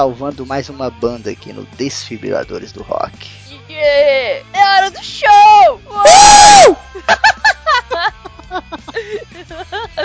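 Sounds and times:
speech: 0.0s - 10.0s
man screaming: 6.0s - 6.8s
laughter: 6.9s - 10.0s.

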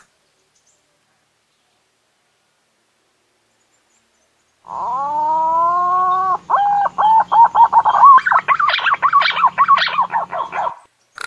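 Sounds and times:
green pigeon whistled call sequence: 4.7s - 10.9s.

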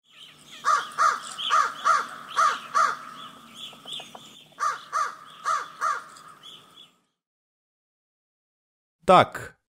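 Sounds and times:
crow cawing: 0.5s - 3.4s, 4.6s - 6.8s
speech: 9.1s - 9.6s.

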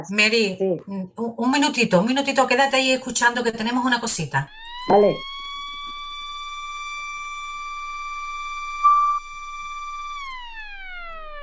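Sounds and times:
speech: 0.0s - 5.3s
electronic siren: 2.5s - 11.4s.

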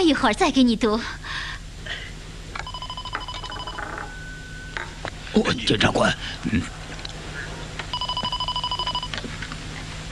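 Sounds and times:
speech: 0.0s - 1.4s, 5.4s - 6.8s
low steady hum: 0.0s - 10.1s
electronic telephone ringing: 2.6s - 4.8s, 7.9s - 9.2s.

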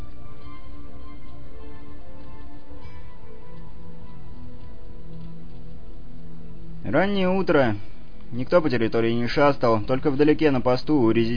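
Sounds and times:
drizzling rain: 0.0s - 10.8s
speech: 6.9s - 11.3s.

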